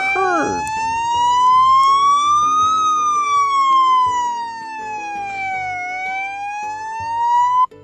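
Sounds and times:
police car siren wailing: 0:00.0 - 0:07.7.

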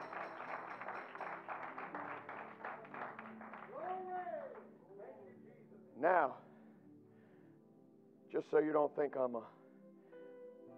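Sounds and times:
audience clapping: 0:00.0 - 0:04.7
speech: 0:06.0 - 0:06.5, 0:08.3 - 0:09.6.

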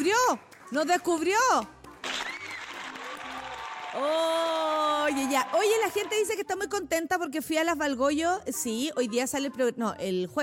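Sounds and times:
speech: 0:00.0 - 0:01.8, 0:03.9 - 0:10.4
audience applause: 0:02.2 - 0:06.2.

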